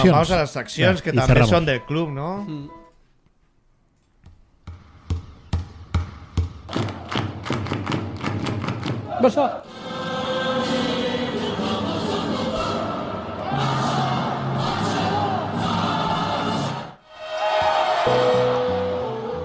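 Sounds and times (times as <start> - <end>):
speech: 0.0 - 2.8, 9.2 - 9.8
loud stadium crowd roaring and cheering: 6.7 - 19.4.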